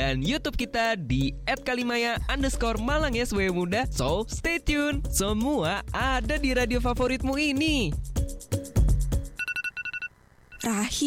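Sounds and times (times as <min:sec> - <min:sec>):
speech: 0:00.1 - 0:08.4, 0:10.6 - 0:11.0
phone alarm with booming hits and high electronic beeps: 0:09.4 - 0:10.7.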